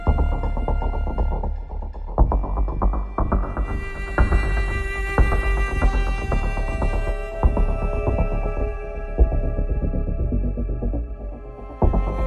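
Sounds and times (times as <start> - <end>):
aggressive strings: 0.0 - 12.2.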